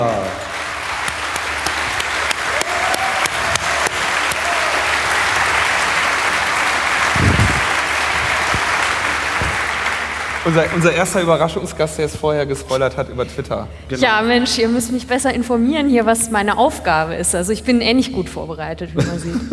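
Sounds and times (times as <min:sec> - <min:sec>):
audience applause: 0:00.0 - 0:12.1
speech: 0:10.5 - 0:19.5.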